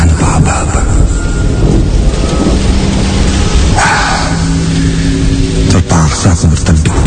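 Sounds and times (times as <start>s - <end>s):
deep rumble of thunder: 0.0s - 7.0s
heavy rain pouring: 0.0s - 7.0s.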